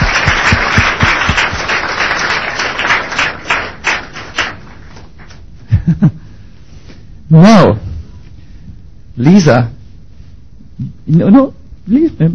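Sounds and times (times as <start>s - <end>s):
audience applause: 0.0s - 5.1s
speech: 7.3s - 7.8s, 9.2s - 9.8s, 10.8s - 12.3s.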